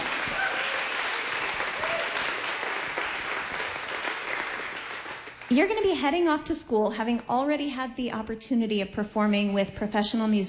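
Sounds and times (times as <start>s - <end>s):
audience applause: 0.0s - 5.5s
speech: 5.5s - 10.4s.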